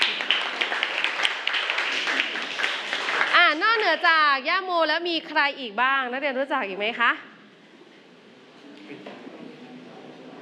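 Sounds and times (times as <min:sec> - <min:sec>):
students clapping for a classmate: 0:00.0 - 0:04.2
speech: 0:03.9 - 0:07.3.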